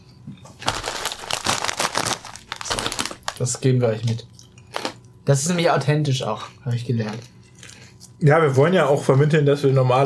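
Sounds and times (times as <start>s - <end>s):
bag of ridged potato chips crinkling: 0.6s - 3.6s
speech: 3.4s - 4.4s, 5.3s - 7.3s, 8.2s - 10.0s.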